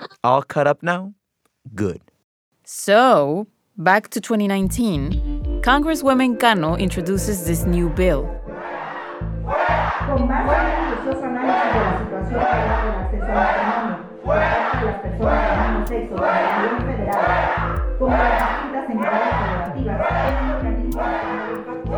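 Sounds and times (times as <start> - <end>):
speech: 0.2 - 2.1, 2.7 - 8.4
opposition crowd booing and heckling: 8.5 - 21.9.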